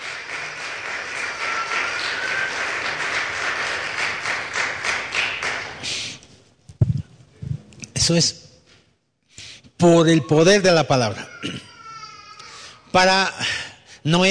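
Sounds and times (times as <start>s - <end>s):
audience applause: 0.0s - 6.0s
speech: 8.0s - 8.5s, 9.8s - 11.6s, 13.0s - 14.3s.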